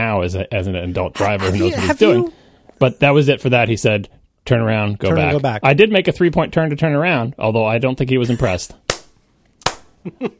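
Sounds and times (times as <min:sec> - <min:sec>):
speech: 0:00.1 - 0:08.8, 0:10.0 - 0:10.3
slow clapping: 0:08.9 - 0:10.0.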